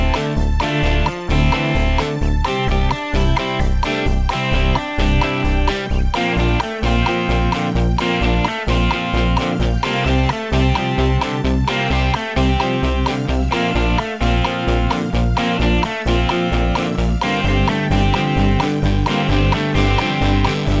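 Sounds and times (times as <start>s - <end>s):
post disco guitar: 0.0s - 20.7s.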